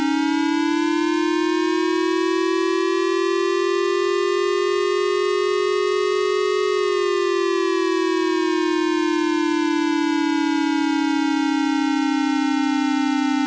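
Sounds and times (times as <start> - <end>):
siren: 0.0 - 13.4.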